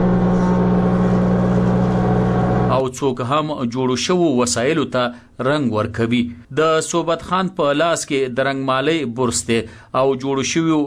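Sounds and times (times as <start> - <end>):
woodworking machines cutting and levelling wood in a furniture workshop: 0.0 - 2.8
speech: 3.0 - 10.8.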